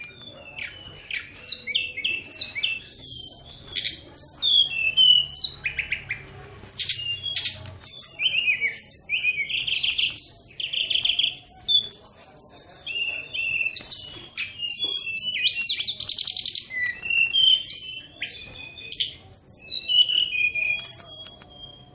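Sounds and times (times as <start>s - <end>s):
bird singing: 0.0s - 21.9s.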